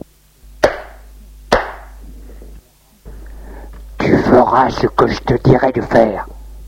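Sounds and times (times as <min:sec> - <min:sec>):
slap across the face: 0:00.6 - 0:01.9
speech: 0:04.5 - 0:06.4.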